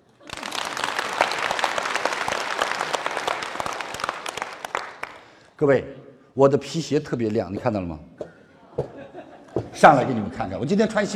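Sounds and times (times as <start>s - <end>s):
audience applause: 0.0s - 5.4s
speech: 5.6s - 8.2s, 9.8s - 11.1s
laughter: 8.6s - 9.7s.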